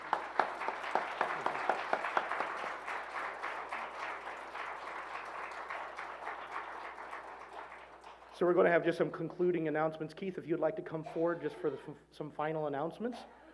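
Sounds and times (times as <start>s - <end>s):
audience applause: 0.0s - 8.4s
speech: 8.4s - 13.4s.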